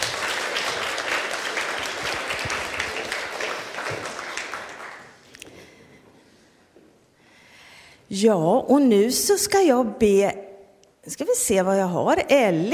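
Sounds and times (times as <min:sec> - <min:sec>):
applause: 0:00.0 - 0:05.5
speech: 0:08.1 - 0:10.4, 0:11.1 - 0:12.7.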